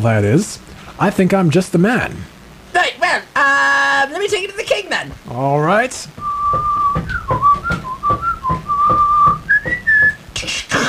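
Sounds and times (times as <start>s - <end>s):
speech: 0.0s - 2.8s, 4.1s - 6.7s
bird whistling: 6.2s - 10.2s
rustling noise: 6.2s - 10.6s
soft rhythmic tapping: 6.2s - 10.7s.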